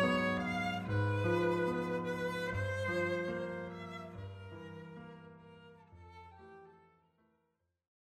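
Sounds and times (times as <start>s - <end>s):
chorinho music: 0.0s - 5.0s.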